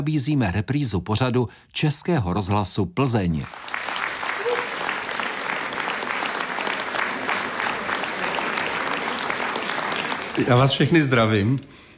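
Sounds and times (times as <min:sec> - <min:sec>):
speech: 0:00.0 - 0:03.9, 0:10.4 - 0:11.9
audience applause: 0:03.5 - 0:11.5.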